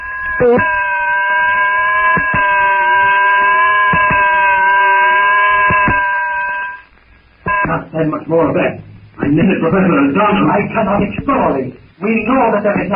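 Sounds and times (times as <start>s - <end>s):
weird unearthly jungle shriek: 0.0s - 6.9s
speech: 0.4s - 0.9s, 8.0s - 12.9s.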